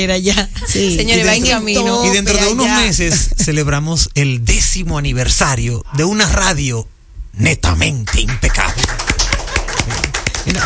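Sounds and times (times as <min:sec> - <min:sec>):
speech: 0:00.0 - 0:09.0, 0:10.4 - 0:10.6
small group clapping live in a studio: 0:07.8 - 0:10.6
laughter: 0:09.0 - 0:10.6.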